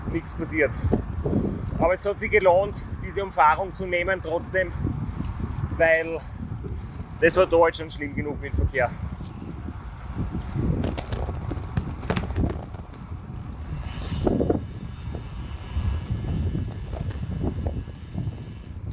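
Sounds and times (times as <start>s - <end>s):
speech: 0.1s - 4.9s, 5.8s - 6.4s, 7.2s - 9.3s
bicycle freewheel whirring: 9.7s - 18.8s.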